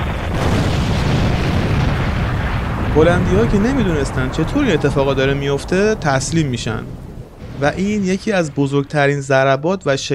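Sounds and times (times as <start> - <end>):
ship's ammunition store exploding: 0.0 - 9.2
dense crackling: 0.0 - 10.1
speech: 3.0 - 7.0, 7.6 - 10.1.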